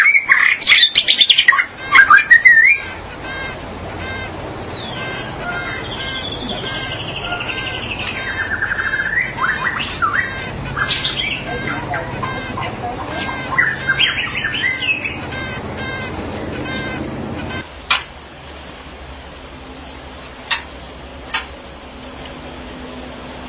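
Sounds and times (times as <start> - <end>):
magpie-robin or shama song with varied whistled phrases: 0.0 - 3.0, 4.0 - 17.7
magpie-robin or shama quick harsh chattering notes: 0.0 - 23.4
steady background hiss: 0.0 - 23.4.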